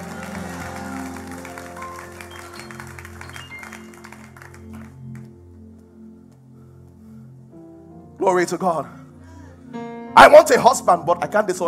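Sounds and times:
humming musical drone: 0.0 - 4.8
audience clapping: 0.0 - 5.5
speech: 8.2 - 9.0, 10.2 - 11.6.

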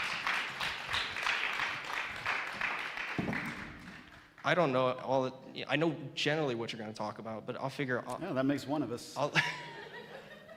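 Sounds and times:
audience applause: 0.0 - 4.4
speech: 4.5 - 9.7
laughter: 9.3 - 10.5.

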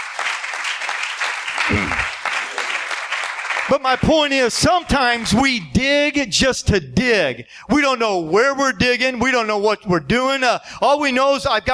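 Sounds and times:
audience hand clapping: 0.0 - 5.4
speech: 1.7 - 2.2, 3.7 - 11.7.

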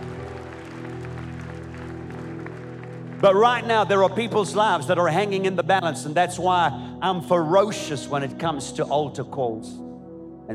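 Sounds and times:
audience clapping: 0.0 - 5.0
speech: 3.2 - 9.8.

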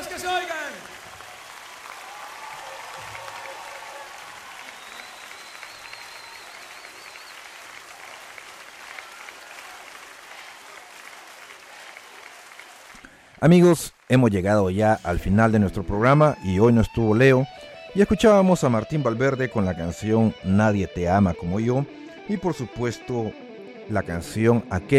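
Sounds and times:
audience applause: 0.0 - 14.8
high whistles: 4.5 - 7.6
speech: 13.4 - 24.9.

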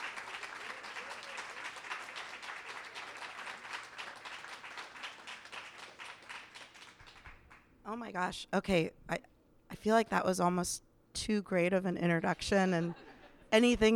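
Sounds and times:
audience applause welcoming an author at Politics and Prose: 0.0 - 7.6
speech: 7.9 - 13.9.

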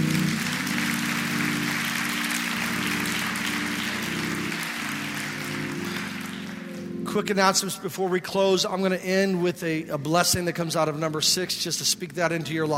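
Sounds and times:
church audience clapping hands in praise: 0.0 - 7.2
speech: 7.1 - 12.7.

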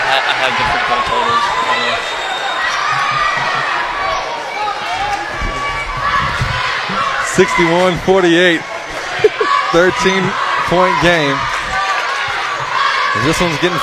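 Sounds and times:
laughter: 0.0 - 1.4, 8.9 - 10.3
loud crowd noise in a basketball gym: 0.0 - 13.8
speech: 0.3 - 2.1, 7.4 - 11.5, 13.2 - 13.8.

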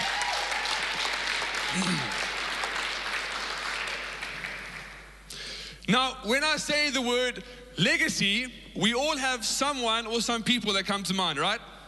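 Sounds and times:
crowd applause: 0.0 - 5.1
speech: 1.7 - 2.2, 5.9 - 11.7.

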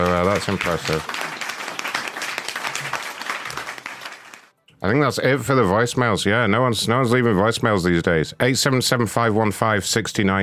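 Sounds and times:
audience clapping after a guitar performance: 0.0 - 4.6
speech: 0.1 - 1.2, 4.8 - 10.4.

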